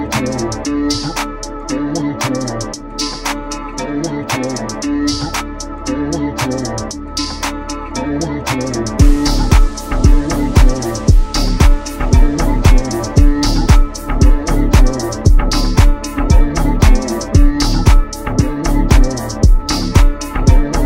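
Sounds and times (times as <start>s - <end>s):
deep house beat with boosted bass: 0.0s - 20.8s.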